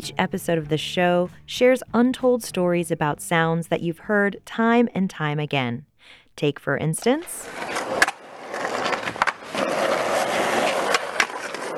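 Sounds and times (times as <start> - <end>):
speech: 0.0 - 8.0
skateboard wheels rolling: 7.4 - 11.7.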